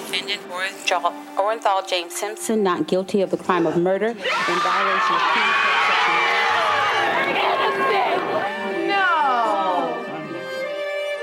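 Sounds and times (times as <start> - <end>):
speech: 0.1 - 6.2
crowd cheering at verdict: 4.2 - 10.3.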